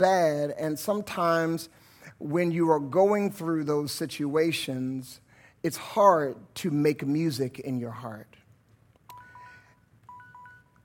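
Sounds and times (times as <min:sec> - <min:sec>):
speech: 0:00.0 - 0:08.4
timer alarm going off: 0:09.1 - 0:10.8.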